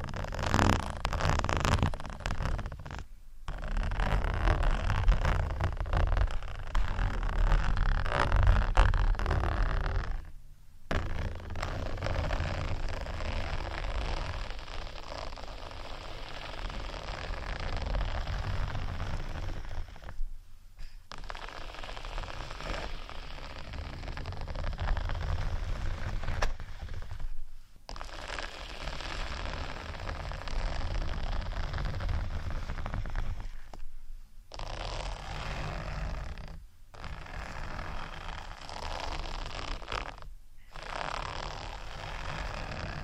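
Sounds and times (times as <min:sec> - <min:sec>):
rough scratching on textured sheets: 0:00.0 - 0:10.3, 0:10.9 - 0:20.2, 0:20.8 - 0:33.9, 0:34.5 - 0:43.0.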